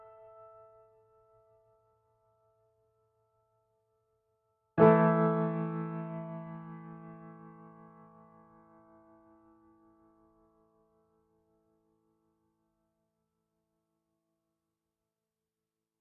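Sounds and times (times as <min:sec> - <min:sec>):
piano: 0:00.0 - 0:02.8, 0:04.7 - 0:11.8.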